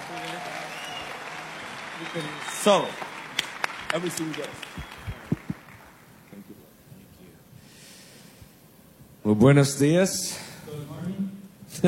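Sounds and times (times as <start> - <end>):
audience applause: 0.0 - 6.4
speech: 2.0 - 3.1, 3.9 - 4.8, 9.3 - 10.5.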